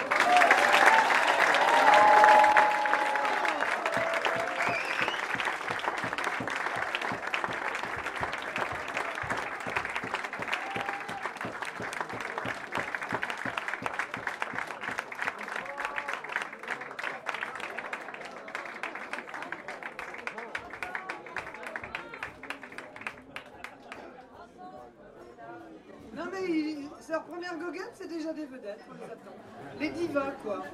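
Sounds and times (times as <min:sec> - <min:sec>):
audience applauding loudly: 0:00.0 - 0:24.1
speech: 0:28.7 - 0:30.7.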